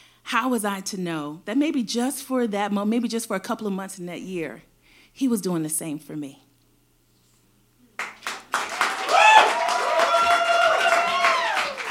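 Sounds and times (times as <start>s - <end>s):
speech: 0.3s - 6.4s
audience applause at a live storytelling show: 8.0s - 11.8s
cheers and whoops: 8.6s - 11.8s.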